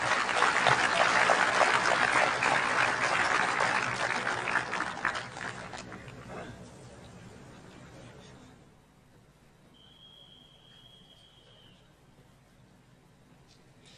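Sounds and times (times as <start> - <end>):
audience applause: 0.0 - 6.2.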